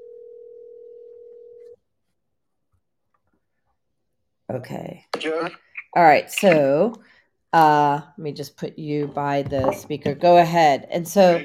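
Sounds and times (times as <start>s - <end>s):
phone dial tone while dialing a call-in guest: 0.0s - 1.8s
speech: 4.5s - 11.4s.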